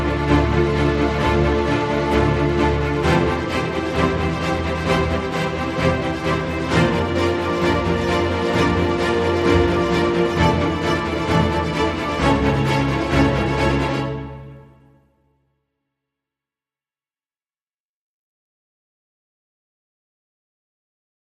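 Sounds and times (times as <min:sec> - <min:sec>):
tense string music: 0:00.0 - 0:15.3.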